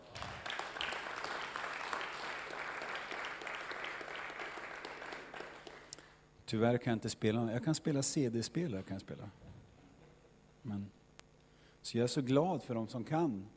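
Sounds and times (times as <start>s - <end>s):
audience applause for worship singers: 0.0s - 6.0s
speech: 6.5s - 9.4s, 11.9s - 13.5s.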